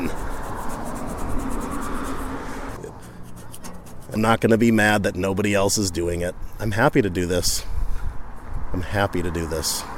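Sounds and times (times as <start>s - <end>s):
sticker being peeled off a surface: 0.0s - 4.2s
speech: 4.2s - 7.7s, 8.7s - 9.9s.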